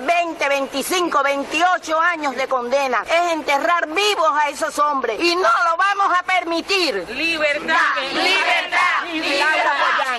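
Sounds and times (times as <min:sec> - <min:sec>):
speech: 0:00.6 - 0:10.1
crowd shouting for freedom: 0:07.3 - 0:10.1.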